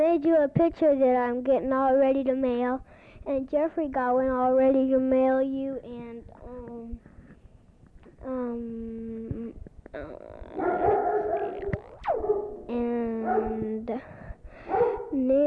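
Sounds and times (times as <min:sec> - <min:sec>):
speech: 0:00.1 - 0:07.1, 0:08.2 - 0:15.4
dog barking at something outside a kitchen window: 0:10.4 - 0:13.8, 0:14.6 - 0:15.4.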